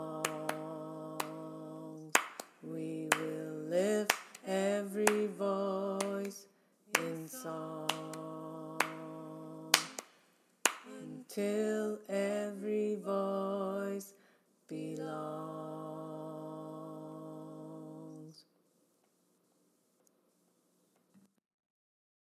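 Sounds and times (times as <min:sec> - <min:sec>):
tenor singing: 0:00.0 - 0:10.0, 0:10.7 - 0:18.4.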